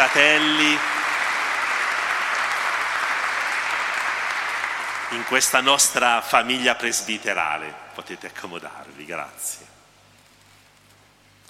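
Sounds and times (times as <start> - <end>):
church congregation applauding newly welcomed priests: 0.0 - 7.6
speech: 0.1 - 1.0, 5.1 - 9.8.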